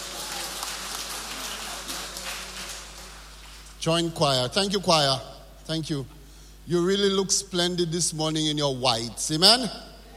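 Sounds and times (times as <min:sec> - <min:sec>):
audience applause for the choir: 0:00.0 - 0:03.7
speech: 0:03.8 - 0:09.9.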